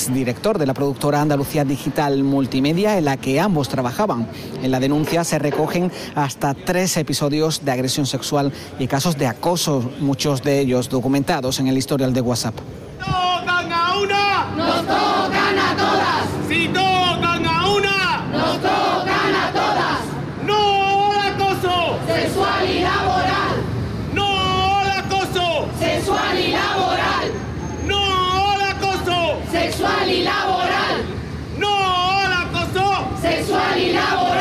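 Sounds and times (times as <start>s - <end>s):
speech: 0.0s - 16.8s
steady wash of crowd noise: 0.0s - 34.3s
large crowd chanting in unison at a protest rally: 14.4s - 16.6s, 18.2s - 20.3s, 21.1s - 27.6s, 28.7s - 31.3s, 32.5s - 34.3s.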